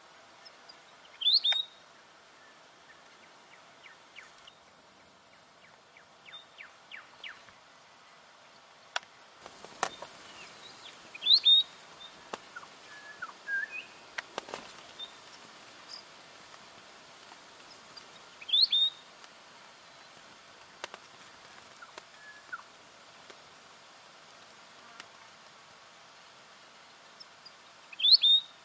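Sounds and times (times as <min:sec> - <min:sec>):
steady background hiss: 0:00.0 - 0:28.6
weebill song: 0:01.1 - 0:01.8, 0:10.3 - 0:14.0, 0:15.0 - 0:15.2, 0:18.4 - 0:19.0, 0:21.8 - 0:22.7, 0:27.9 - 0:28.6.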